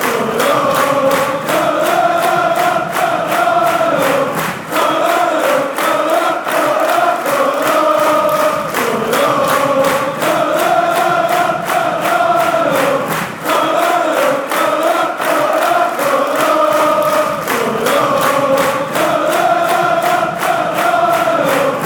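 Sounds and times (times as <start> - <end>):
fans chanting schalala: 0.0 - 21.8.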